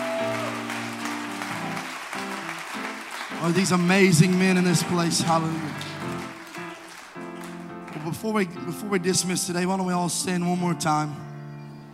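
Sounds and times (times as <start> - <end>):
audience applause: 0.0 - 8.4
speech: 3.4 - 6.0, 8.1 - 11.3.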